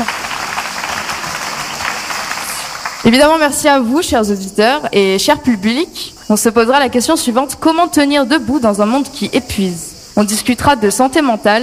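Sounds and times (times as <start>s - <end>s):
audience applause at a live public discussion event: 0.0s - 3.1s
speech: 3.0s - 11.6s.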